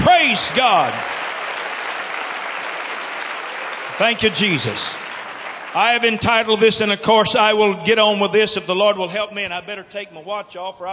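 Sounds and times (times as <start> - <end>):
audience hand clapping: 0.0 - 7.0
speech: 0.4 - 1.2, 4.0 - 5.0, 5.7 - 10.9.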